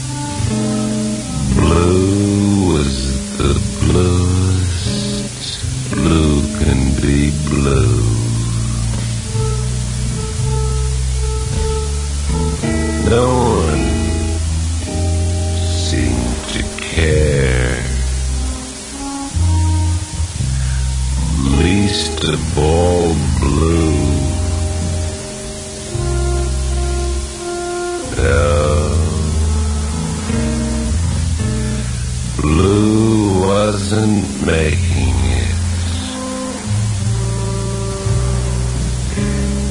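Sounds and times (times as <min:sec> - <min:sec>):
blue noise mix: 0:00.0 - 0:39.6.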